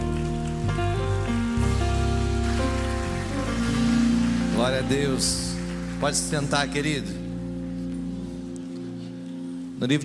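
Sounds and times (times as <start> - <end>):
audience applause: 0.0 - 7.3
sustained keyboard chords: 0.0 - 10.0
speech: 4.6 - 7.2, 9.8 - 10.0.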